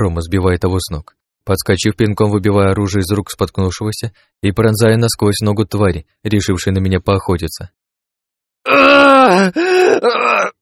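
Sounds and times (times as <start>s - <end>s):
speech: 0.0s - 7.8s, 8.6s - 10.6s
wounded man groaning in pain: 8.7s - 10.6s.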